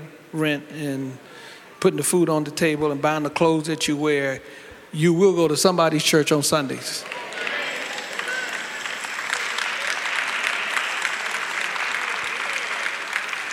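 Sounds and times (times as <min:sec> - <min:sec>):
speech: 0:00.3 - 0:07.6
audience clapping: 0:07.0 - 0:13.5.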